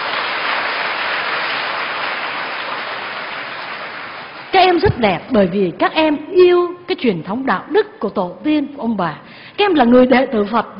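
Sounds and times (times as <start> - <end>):
audience of Vietnamese students applauding: 0.0 - 4.8
speech: 4.8 - 10.7.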